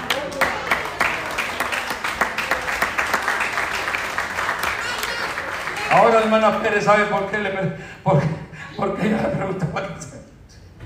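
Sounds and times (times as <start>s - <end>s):
audience applauding: 0.0s - 7.4s
speech: 5.9s - 10.3s.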